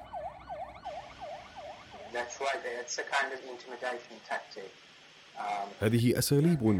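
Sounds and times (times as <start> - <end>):
patrol vehicle sirens passing in street: 0.0 - 4.4
speech: 2.1 - 4.8, 5.4 - 6.7.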